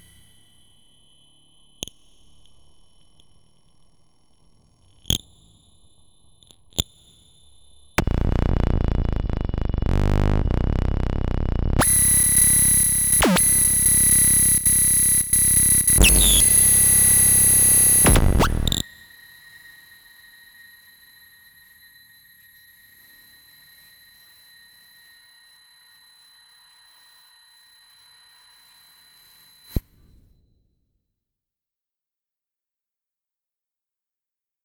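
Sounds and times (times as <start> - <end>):
tuning noise: 7.4 - 29.8.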